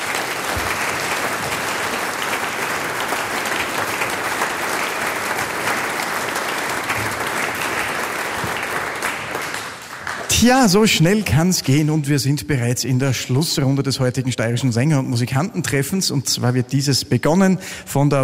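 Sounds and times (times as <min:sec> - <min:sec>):
audience applause: 0:00.0 - 0:11.1
speech: 0:10.4 - 0:18.2.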